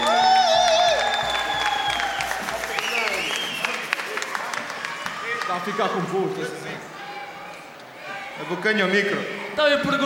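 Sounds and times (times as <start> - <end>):
audience applause: 0.0 - 6.1
speech: 5.6 - 6.9, 8.4 - 10.0.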